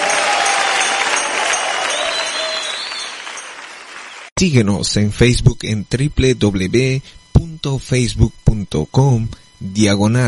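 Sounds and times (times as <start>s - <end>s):
audience applauding loudly: 0.0s - 4.3s
speech: 4.4s - 10.2s.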